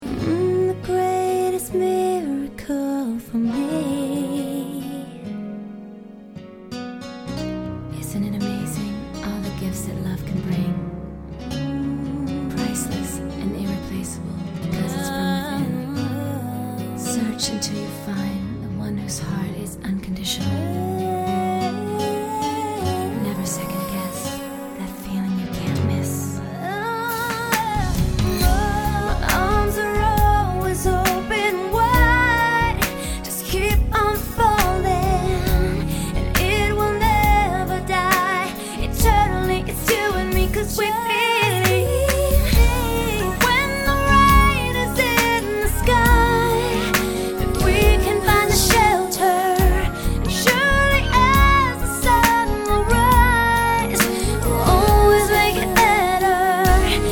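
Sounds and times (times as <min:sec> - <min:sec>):
pop ballads: 0:00.0 - 0:05.8, 0:07.3 - 0:57.1.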